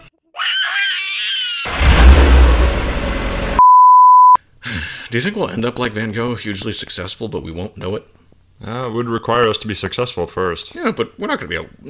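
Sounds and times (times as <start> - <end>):
lawnmower engine starting: 1.7 - 3.6
speech: 5.1 - 11.8.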